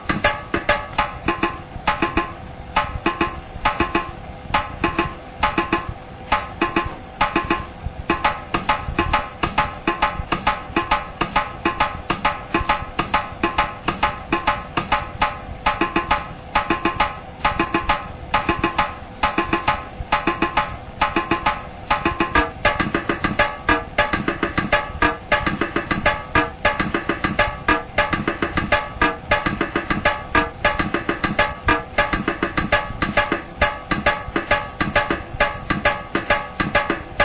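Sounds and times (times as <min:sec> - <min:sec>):
drum rhythms: 0:00.0 - 0:37.2.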